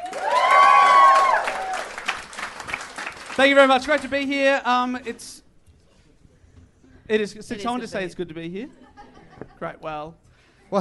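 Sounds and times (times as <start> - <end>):
loud whoops and cheers: 0.0 - 2.1
audience applause: 0.0 - 4.3
speech: 3.4 - 5.4, 7.1 - 8.8, 9.6 - 10.7.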